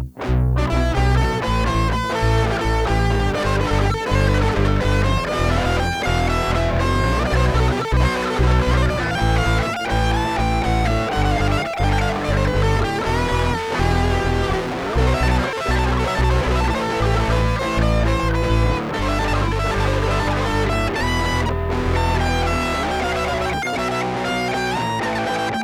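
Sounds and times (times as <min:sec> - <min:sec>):
musical solo: 0:00.2 - 0:25.5.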